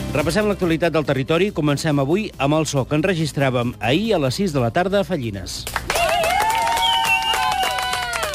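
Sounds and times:
speech: 0.1 - 5.9
applause: 5.5 - 8.3.

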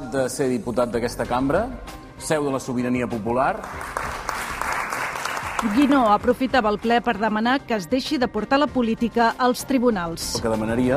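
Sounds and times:
speech: 0.1 - 4.1, 5.6 - 10.9
applause in parliament chamber: 3.6 - 6.1.

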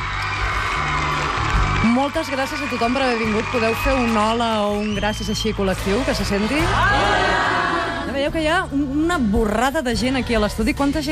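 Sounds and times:
loud applause and cheering from a choir: 0.0 - 8.0
speech: 1.8 - 11.1.

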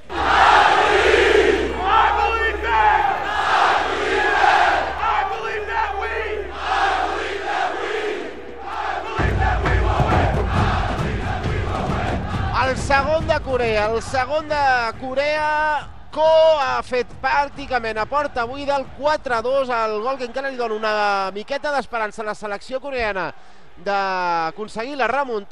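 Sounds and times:
football fans chanting in unison: 0.0 - 13.7
speech: 13.8 - 25.4.

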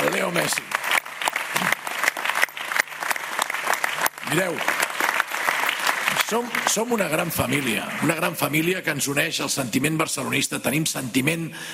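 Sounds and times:
applause for Leo Messi: 0.0 - 8.8
speech: 0.3 - 0.8, 4.3 - 4.8, 6.3 - 11.7.

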